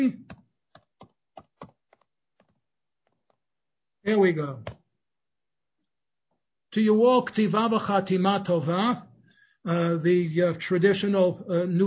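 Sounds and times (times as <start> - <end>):
speech: 0.0 - 0.3, 4.1 - 4.8, 6.8 - 11.8
typing a comment on a computer keyboard: 0.1 - 3.4.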